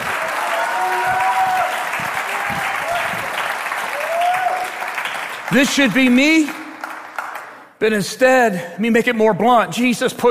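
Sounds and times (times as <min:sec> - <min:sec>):
voices whooping: 0:00.0 - 0:04.8
audience applause: 0:00.0 - 0:07.7
speech: 0:05.5 - 0:06.6, 0:07.8 - 0:10.3.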